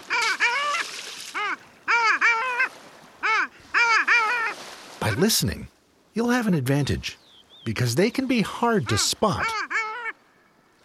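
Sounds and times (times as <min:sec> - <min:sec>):
male long-tailed duck calling: 0:00.1 - 0:04.6, 0:08.8 - 0:10.2
speech: 0:05.1 - 0:09.7.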